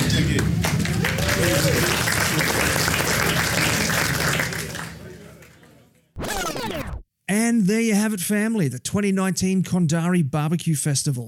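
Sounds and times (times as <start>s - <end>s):
crowd applauding at the 2019 Kondari Barbecue Festival: 0.3s - 5.5s
speech: 7.5s - 11.2s.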